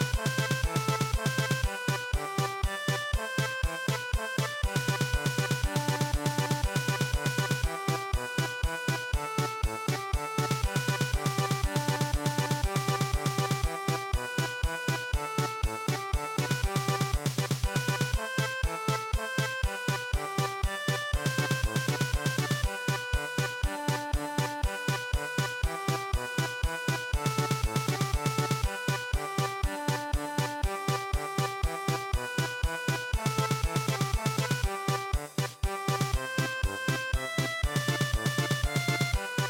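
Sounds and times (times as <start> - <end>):
traditional German polka MIDI music: 0.0 - 39.4.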